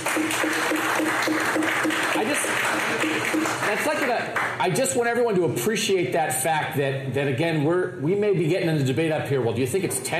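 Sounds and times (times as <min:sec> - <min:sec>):
audience clapping: 0:00.0 - 0:04.8
speech: 0:03.7 - 0:10.1.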